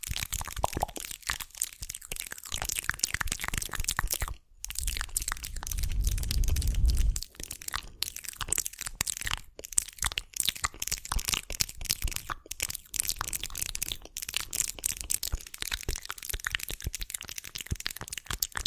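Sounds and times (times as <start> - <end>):
wet mouth clicks, smacks and crackles: 0.0 - 18.6
low rumbling thump: 5.5 - 7.2.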